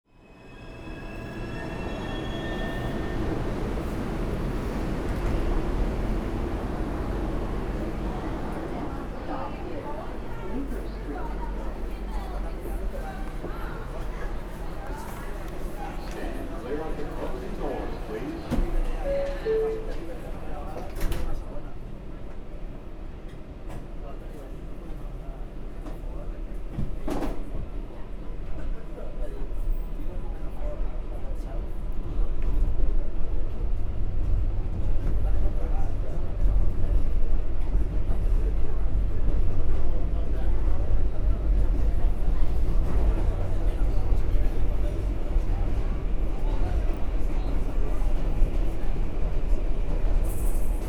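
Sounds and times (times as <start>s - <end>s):
subway Line 6 train to Brooklyn Bridge: 0.0s - 50.8s.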